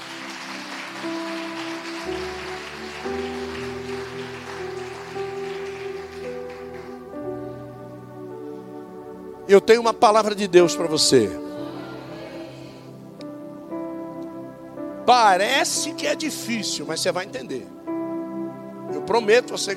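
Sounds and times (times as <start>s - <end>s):
audience applauding: 0.0s - 7.5s
speech: 9.5s - 11.5s, 15.1s - 17.8s, 19.1s - 19.7s.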